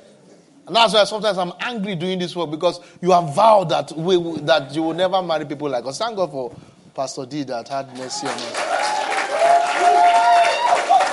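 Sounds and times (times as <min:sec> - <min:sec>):
speech: 0:00.7 - 0:08.9
audience clapping: 0:07.9 - 0:11.1.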